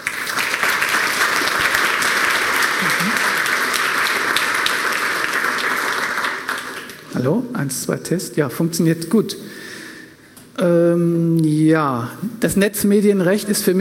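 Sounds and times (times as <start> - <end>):
audience applause: 0.0 - 7.3
speech: 7.2 - 9.5, 10.6 - 13.7.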